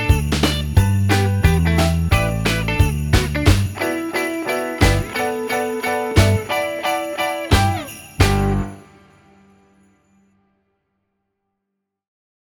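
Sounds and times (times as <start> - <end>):
instrumental music: 0.0 - 9.7.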